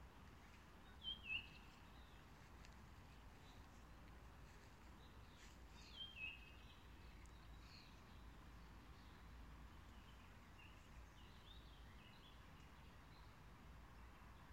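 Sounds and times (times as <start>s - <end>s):
birdsong: 0.1s - 14.5s.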